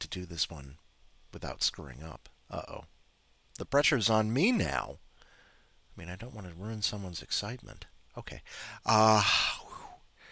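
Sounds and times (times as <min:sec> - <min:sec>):
speech: 0:00.1 - 0:03.0, 0:03.6 - 0:05.0, 0:06.0 - 0:09.6
deep breath drawn to steady the nerves: 0:05.1 - 0:05.8, 0:08.4 - 0:10.2.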